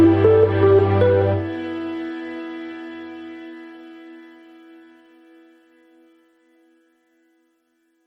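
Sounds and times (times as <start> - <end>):
fantasy background music: 0.0 - 2.0.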